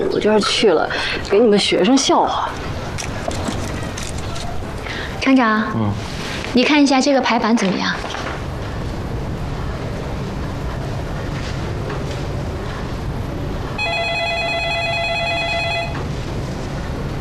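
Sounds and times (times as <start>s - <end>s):
low rumbling noise: 0.0s - 17.1s
speech: 0.2s - 2.7s, 5.3s - 8.2s
telephone ringing: 13.8s - 16.1s.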